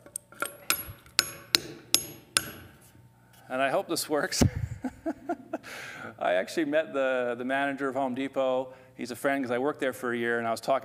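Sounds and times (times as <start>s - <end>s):
hammer driving an anchor bolt through a 2x4: 0.0s - 2.9s
speech: 3.5s - 5.2s, 6.2s - 10.8s.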